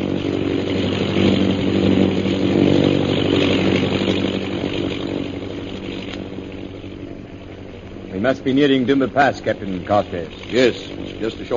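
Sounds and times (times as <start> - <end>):
propeller airplane engine droning: 0.0 - 11.5
speech: 8.3 - 11.5.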